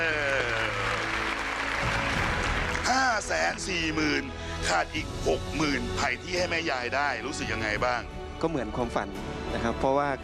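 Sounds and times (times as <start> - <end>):
audience applause: 0.0 - 3.8
speech: 3.3 - 10.2.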